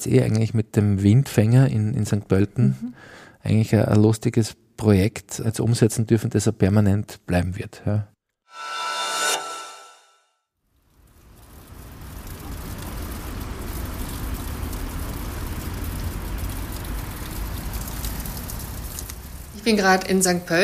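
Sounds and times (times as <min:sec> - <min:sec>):
speech: 0:00.0 - 0:08.8, 0:19.7 - 0:20.6
brief tonal sound: 0:08.5 - 0:10.2
water dripping down a brick lattice wall: 0:10.6 - 0:20.6.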